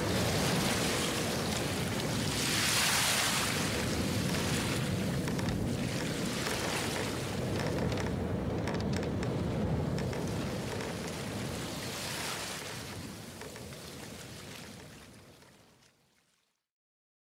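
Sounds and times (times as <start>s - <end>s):
ocean tides: 0.0s - 15.8s.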